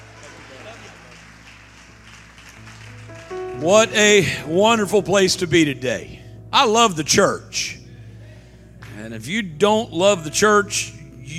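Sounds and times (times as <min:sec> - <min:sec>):
audience clapping hands: 0:00.0 - 0:04.4
speech: 0:03.6 - 0:07.8, 0:09.1 - 0:11.3.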